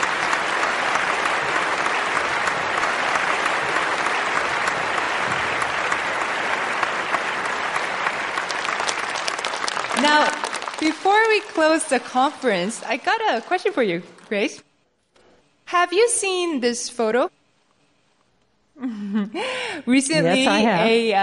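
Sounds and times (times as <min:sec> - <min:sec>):
audience applause: 0:00.0 - 0:12.6
speech: 0:10.2 - 0:14.6, 0:15.7 - 0:17.4, 0:19.3 - 0:21.2.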